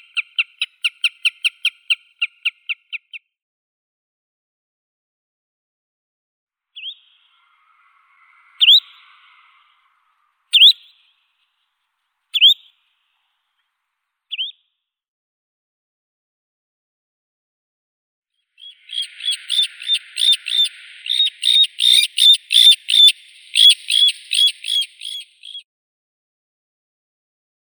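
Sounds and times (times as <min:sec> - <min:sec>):
spotted redshank Tringa erythropus calling: 0:00.0 - 0:02.7, 0:06.8 - 0:11.2, 0:18.6 - 0:25.6.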